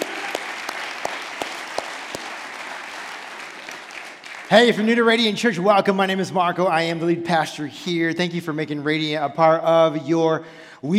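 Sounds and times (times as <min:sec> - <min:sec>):
audience clapping hands: 0:00.0 - 0:05.2
speech: 0:04.5 - 0:10.9.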